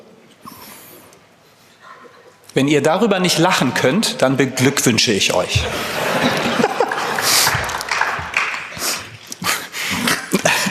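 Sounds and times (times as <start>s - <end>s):
speech: 2.6s - 6.4s
laughter: 5.5s - 8.6s, 10.0s - 10.7s
scattered clapping from a few people: 6.2s - 9.2s.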